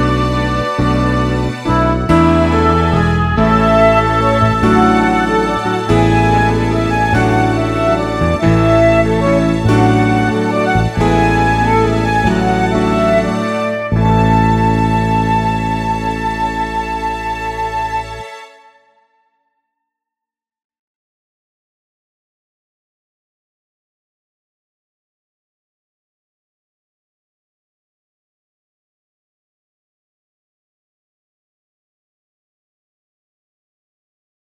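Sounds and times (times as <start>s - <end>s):
instrumental melody track: 0.0s - 19.2s.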